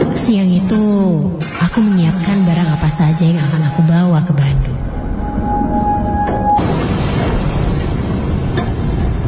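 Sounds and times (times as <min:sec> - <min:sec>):
speech: 0:00.2 - 0:04.8
thunder rumbling: 0:02.2 - 0:09.2.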